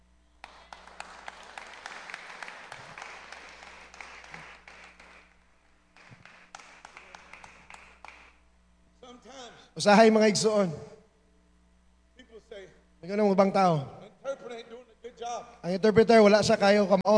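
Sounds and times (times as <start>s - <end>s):
audience hand clapping for a man at a gathering: 0.4s - 5.4s, 6.0s - 8.4s
speech: 9.5s - 10.9s, 13.3s - 14.0s, 15.6s - 17.1s.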